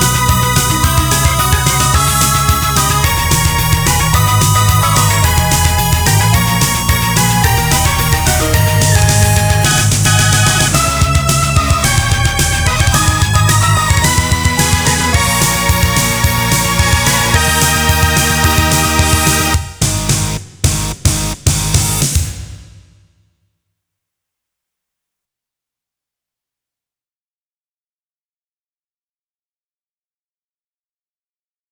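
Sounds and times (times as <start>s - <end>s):
trap beat: 0.0s - 21.9s.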